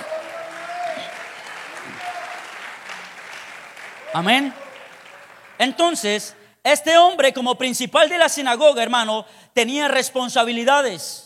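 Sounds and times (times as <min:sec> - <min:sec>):
audience applauding: 0:00.0 - 0:06.3
speech: 0:04.1 - 0:04.6, 0:05.6 - 0:11.2.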